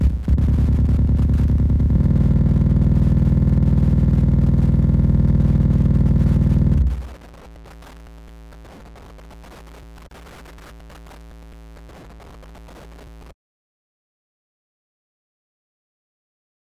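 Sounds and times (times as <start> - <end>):
noise: 0.0 - 13.4.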